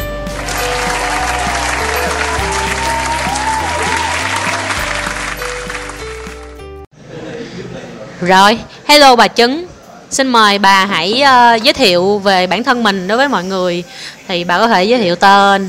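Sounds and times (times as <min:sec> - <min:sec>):
upbeat music with a stepping bass line: 0:00.0 - 0:06.8
applause welcoming a guest: 0:00.2 - 0:06.6
speech: 0:08.2 - 0:15.6.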